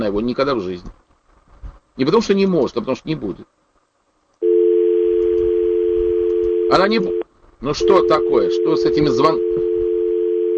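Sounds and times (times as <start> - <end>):
speech: 0.0 - 1.0, 2.0 - 3.6, 6.7 - 9.7
faint low rumble: 0.0 - 10.5
telephone dial tone: 4.4 - 7.2, 7.8 - 10.5.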